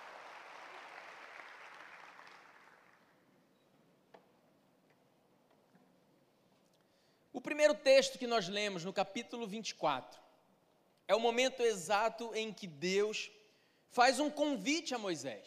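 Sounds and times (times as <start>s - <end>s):
audience applauding: 0.0s - 3.2s
speech: 7.4s - 10.2s, 11.1s - 15.4s.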